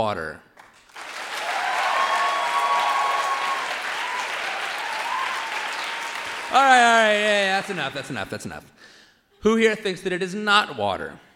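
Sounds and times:
speech: 0.0 - 0.5, 6.5 - 11.3
audience applause: 0.8 - 8.3.

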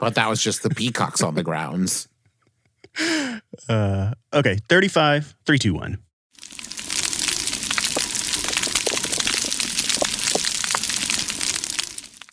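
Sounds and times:
speech: 0.0 - 2.1, 3.0 - 6.0
coral reef underwater crackling: 6.4 - 12.3.

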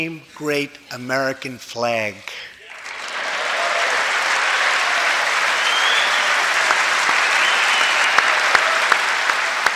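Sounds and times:
speech: 0.0 - 2.5
applause: 2.6 - 9.7
loud hand clapping near microphone: 2.7 - 9.7.

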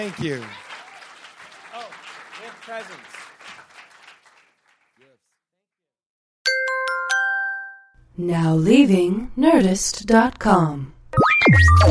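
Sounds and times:
speech: 0.0 - 0.6, 2.5 - 3.2, 8.2 - 11.9
audience applause: 0.0 - 5.2.

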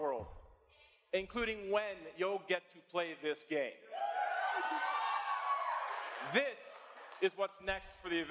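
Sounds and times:
speech: 1.1 - 4.9, 6.2 - 8.2
crowd cheering and roaring: 3.9 - 7.4.

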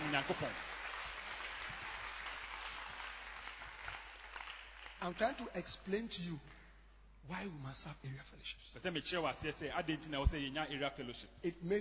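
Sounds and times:
audience clapping hands: 0.0 - 5.6
speech: 0.1 - 0.7, 5.0 - 6.6, 7.2 - 11.8.

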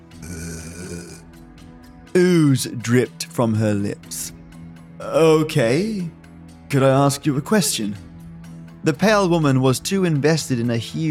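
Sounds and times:
woman groaning: 0.2 - 1.2
speech: 2.2 - 4.4, 5.0 - 8.1, 8.8 - 11.0.

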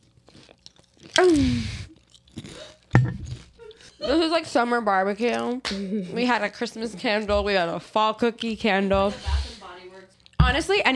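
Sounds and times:
crunchy food being chewed: 0.0 - 3.6
speech: 1.2 - 1.8, 4.0 - 9.4, 10.5 - 10.9.

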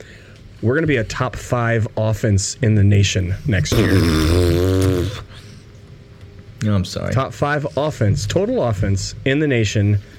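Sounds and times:
speech: 0.0 - 5.3, 6.6 - 10.1
person spitting out whiskey: 3.7 - 5.3.

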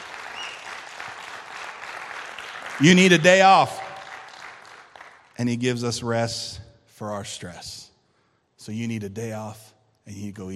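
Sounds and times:
audience round of applause: 0.0 - 5.3
speech: 2.8 - 3.8, 5.4 - 7.9, 8.6 - 10.5.

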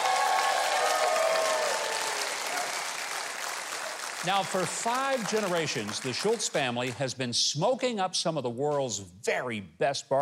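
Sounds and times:
audience applause: 0.0 - 7.0
speech: 4.2 - 10.2.

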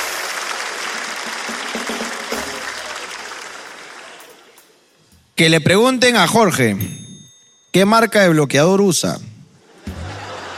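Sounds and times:
audience applause: 0.0 - 4.6
speech: 5.4 - 7.0, 7.7 - 9.3
laughter: 9.6 - 10.5.

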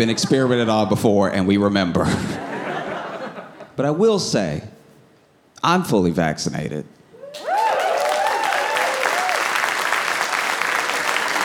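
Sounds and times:
speech: 0.0 - 2.6, 3.8 - 4.7, 5.6 - 7.0
laughter: 2.0 - 3.8
audience applause: 7.2 - 11.4.

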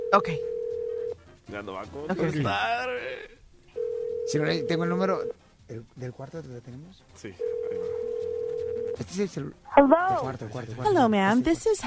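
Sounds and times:
telephone line ringback tone after dialing: 0.0 - 1.1, 3.8 - 5.3, 7.4 - 9.0
speech: 0.1 - 0.5, 1.5 - 3.4, 4.3 - 7.9, 9.0 - 11.8.

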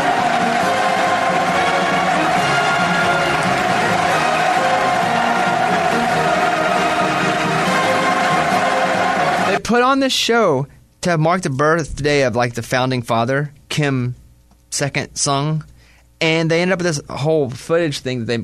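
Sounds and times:
crowd cheering at a show: 0.0 - 9.6
speech: 9.7 - 18.4.

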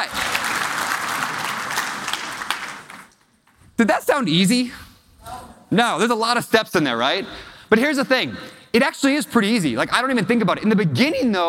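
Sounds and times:
audience applause after a participation exercise: 0.0 - 3.2
speech: 3.8 - 4.8, 5.7 - 11.4.

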